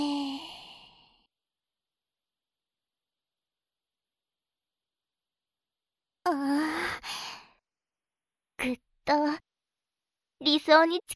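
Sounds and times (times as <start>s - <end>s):
person exhaling slowly: 0.0s - 1.2s
speech: 8.6s - 9.4s, 10.4s - 11.1s.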